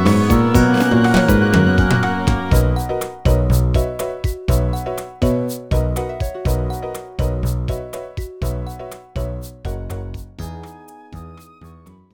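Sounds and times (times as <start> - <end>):
staff roll background music: 0.0 - 9.3.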